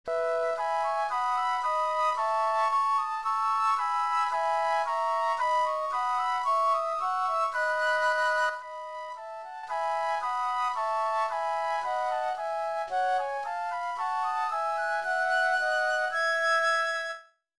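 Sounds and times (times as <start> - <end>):
flute playing a hymn: 0.1 - 17.4.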